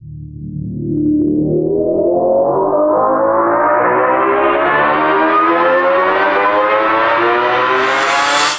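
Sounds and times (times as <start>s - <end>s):
uplifter riser: 0.4s - 8.5s.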